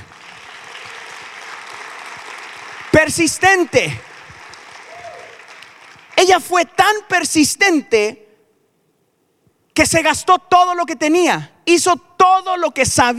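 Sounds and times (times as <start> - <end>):
audience applause: 0.0 - 6.2
speech: 3.0 - 4.1, 6.2 - 8.2, 9.8 - 13.1.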